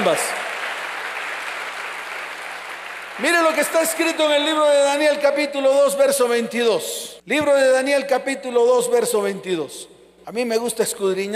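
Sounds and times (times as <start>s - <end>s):
audience applause: 0.0s - 4.4s
speech: 0.1s - 0.4s, 3.2s - 11.3s.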